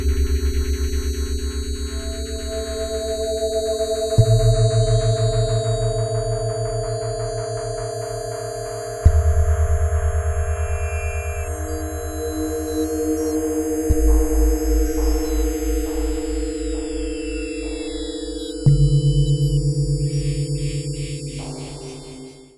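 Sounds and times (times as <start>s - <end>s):
Kawai K5 synthesizer: 0.0s - 22.5s.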